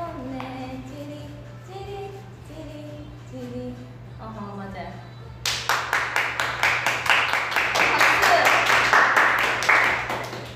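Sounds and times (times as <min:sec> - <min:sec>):
clapping: 0:05.4 - 0:10.5.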